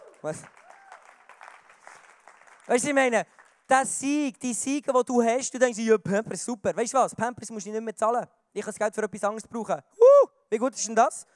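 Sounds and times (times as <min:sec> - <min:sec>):
audience applause: 0:00.0 - 0:03.6
speech: 0:00.2 - 0:00.6, 0:02.7 - 0:11.3.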